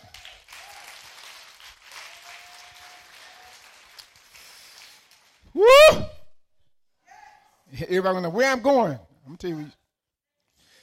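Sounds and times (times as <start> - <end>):
audience clapping hands: 0.0 - 5.6
speech: 7.8 - 9.8.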